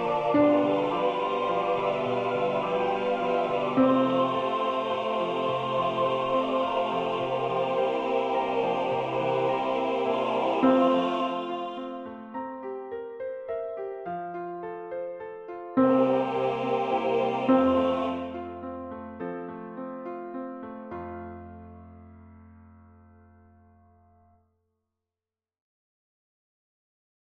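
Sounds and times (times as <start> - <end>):
alto voice singing a choral rehearsal track: 0.0 - 12.4, 15.8 - 18.8.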